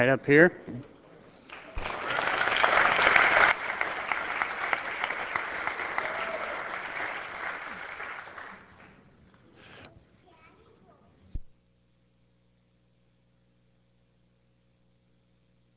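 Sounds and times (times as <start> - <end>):
applause in a legislative House chamber: 1.5 - 9.1.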